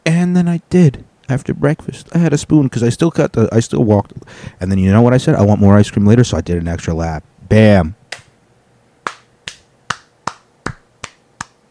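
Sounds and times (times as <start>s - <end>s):
speech: 0.2s - 8.0s
single pair of hands clapping: 8.1s - 8.3s, 9.0s - 11.7s.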